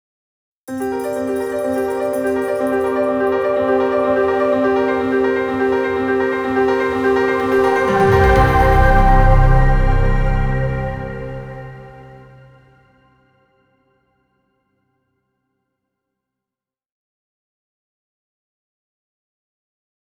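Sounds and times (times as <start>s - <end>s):
jingle: 0.7s - 12.6s.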